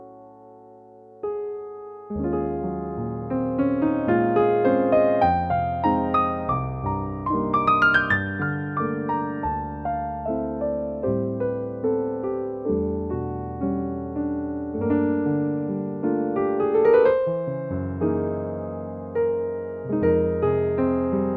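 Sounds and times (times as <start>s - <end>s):
vintage piano: 0.0s - 21.3s.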